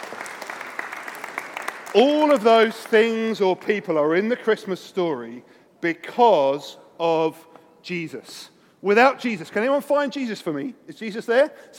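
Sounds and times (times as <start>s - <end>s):
round of applause: 0.0s - 3.2s
speech: 2.0s - 11.7s.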